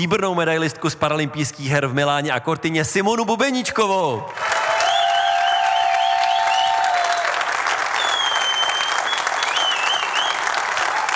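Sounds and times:
speech: 0.0 - 4.6
audience applause welcoming a guest: 4.3 - 11.1.

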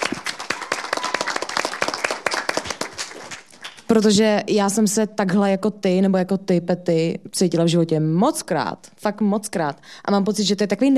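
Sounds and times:
audience clapping: 0.0 - 4.1
speech: 3.9 - 10.9.

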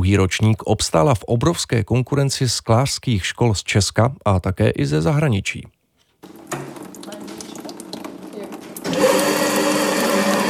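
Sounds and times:
speech: 0.0 - 5.8
glass grinding machine running: 8.8 - 10.4.

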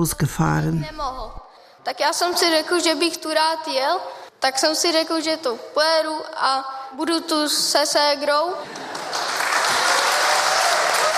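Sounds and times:
speech: 0.0 - 8.9
audience applause rewarding a speaker at a public gathering: 8.7 - 11.1.

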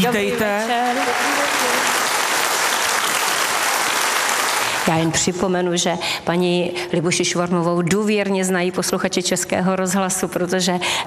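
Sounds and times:
speech: 0.0 - 1.3, 4.8 - 11.0
audience applause: 0.3 - 5.3.

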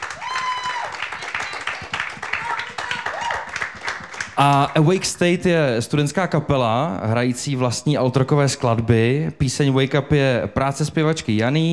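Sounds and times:
applause: 0.0 - 5.2
speech: 4.4 - 11.7.

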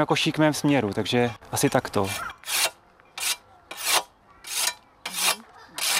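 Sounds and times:
speech: 0.0 - 2.4
whetstone sharpening a scythe blade: 2.0 - 5.9.

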